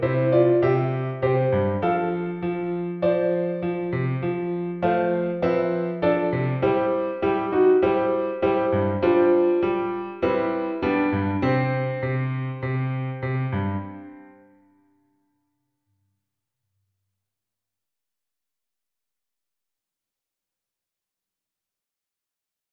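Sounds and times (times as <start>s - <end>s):
tango music: 0.0s - 14.0s.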